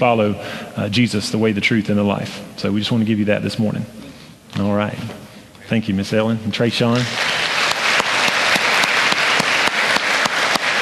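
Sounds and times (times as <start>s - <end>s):
speech: 0.0s - 7.4s
crowd clapping: 6.9s - 10.8s.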